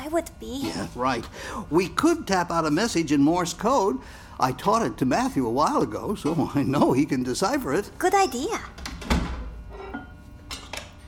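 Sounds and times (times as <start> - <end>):
low hum: 0.0 - 11.0
speech: 0.1 - 8.8
basement door thudding shut: 8.8 - 9.5.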